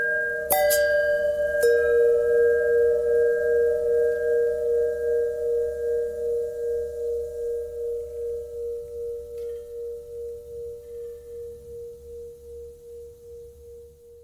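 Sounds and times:
long bending bell tones: 0.0 - 14.2.

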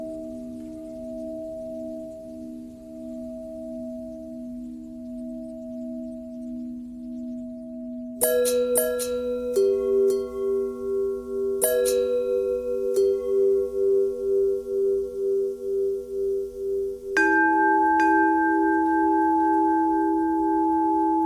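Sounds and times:
long bell ringing: 8.2 - 21.2.

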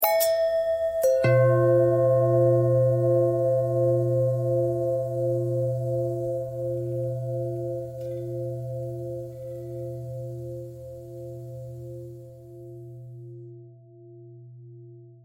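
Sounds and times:
long simple bell ringing: 0.0 - 9.3.

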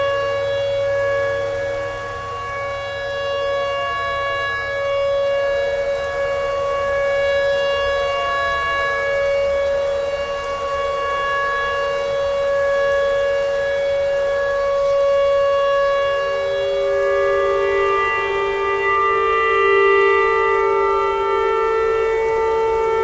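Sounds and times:
tornado siren: 0.0 - 23.0.

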